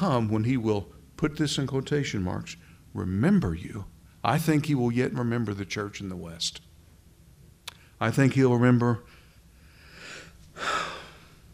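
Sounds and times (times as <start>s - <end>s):
speech: 0.0s - 6.7s, 8.0s - 9.2s
speaker taking a deep breath: 9.1s - 11.4s.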